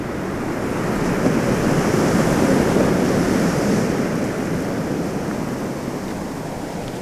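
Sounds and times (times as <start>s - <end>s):
waves breaking on a beach: 0.0s - 7.0s.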